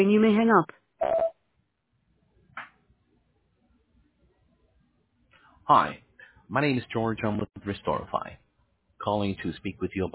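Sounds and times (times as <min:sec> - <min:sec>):
speech: 0:00.0 - 0:01.2, 0:05.7 - 0:08.4, 0:09.0 - 0:10.1
voicemail recording tone beep: 0:01.0 - 0:01.3.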